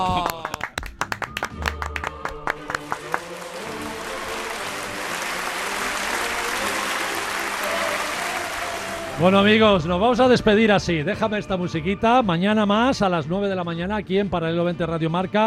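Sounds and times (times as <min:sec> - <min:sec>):
audience applause: 0:00.0 - 0:09.4
speech: 0:09.2 - 0:15.4.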